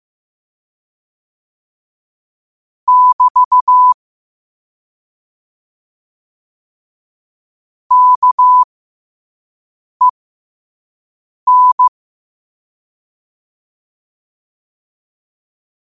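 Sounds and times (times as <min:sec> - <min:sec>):
morse code at 5 wpm: 0:02.9 - 0:04.0, 0:07.9 - 0:08.6, 0:11.5 - 0:11.9.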